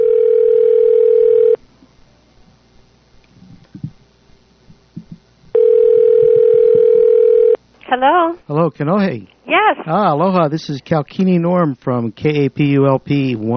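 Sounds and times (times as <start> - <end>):
telephone line ringing tone: 0.0 - 1.6, 5.5 - 7.6
speech: 8.0 - 13.5.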